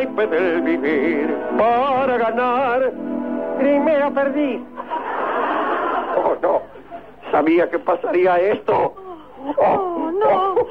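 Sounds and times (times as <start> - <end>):
speech: 0.2 - 4.8, 7.3 - 8.9, 9.4 - 10.6
laughter: 4.8 - 7.2, 9.4 - 10.6
woman crying: 8.9 - 10.6.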